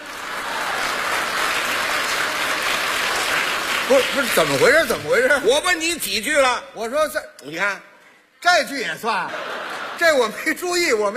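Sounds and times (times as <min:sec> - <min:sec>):
audience applause: 0:00.0 - 0:05.3
speech: 0:03.9 - 0:11.1
laughter: 0:09.1 - 0:10.9.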